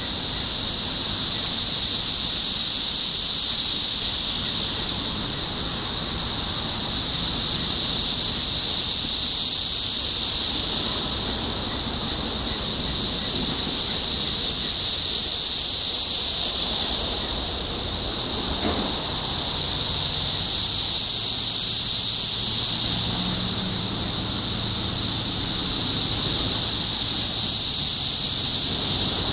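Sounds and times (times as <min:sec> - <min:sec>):
cicadas buzzing: 0:00.0 - 0:29.3
low thump: 0:18.4 - 0:19.5.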